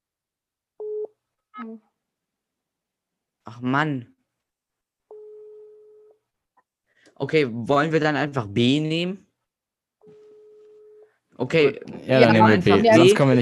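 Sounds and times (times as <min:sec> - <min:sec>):
speech: 0:01.6 - 0:01.9, 0:03.5 - 0:04.1, 0:07.2 - 0:09.2, 0:11.4 - 0:13.4
phone call ringing tone: 0:05.1 - 0:06.2, 0:10.0 - 0:11.1.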